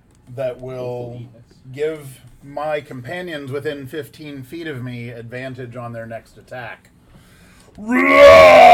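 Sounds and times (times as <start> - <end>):
speech: 0.3 - 7.0, 7.8 - 8.7
person bellowing a minotaur battle cry: 7.8 - 8.7.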